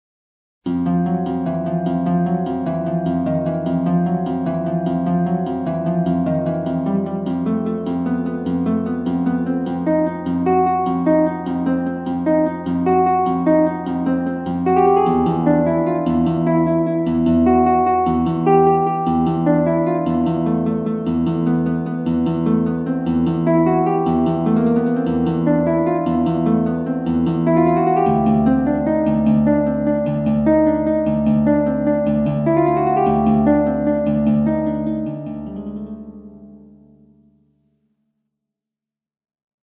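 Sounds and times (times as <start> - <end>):
battle lute music: 0.7 - 37.0.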